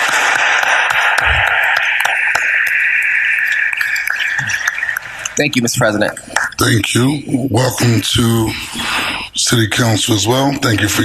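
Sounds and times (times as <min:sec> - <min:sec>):
audience applause: 0:00.0 - 0:05.7
speech: 0:05.4 - 0:11.0.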